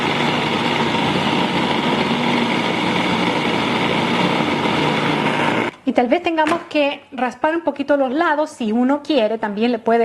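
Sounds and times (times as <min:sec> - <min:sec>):
food processor blending strawberries: 0:00.0 - 0:05.8
speech: 0:06.0 - 0:10.0.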